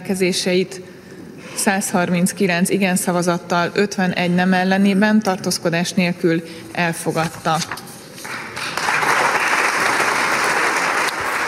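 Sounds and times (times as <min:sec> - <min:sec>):
speech: 0:00.1 - 0:07.9
applause in the Hungarian parliament after a vote: 0:08.2 - 0:11.4.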